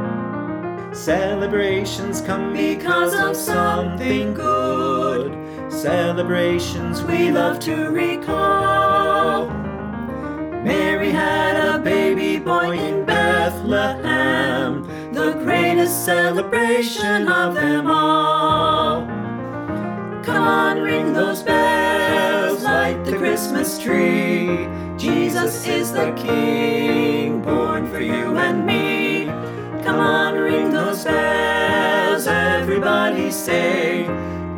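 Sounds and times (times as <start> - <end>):
vocals with accompaniment: 0.9 - 34.5
choir singing: 1.0 - 9.6, 10.6 - 19.2, 20.2 - 34.5.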